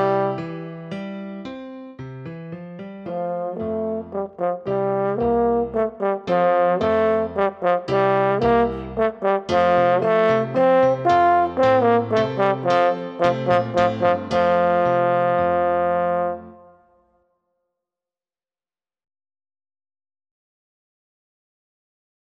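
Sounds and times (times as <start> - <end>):
French horn solo: 0.0 - 0.6, 3.1 - 16.9
piano accompaniment: 0.0 - 16.9.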